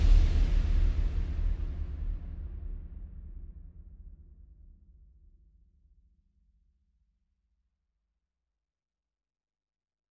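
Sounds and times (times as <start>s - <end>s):
percussion: 0.0s - 4.8s.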